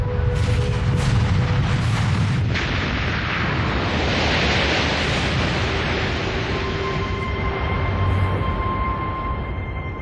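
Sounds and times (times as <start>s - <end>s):
gigantic volcanic explosion: 0.0s - 9.4s.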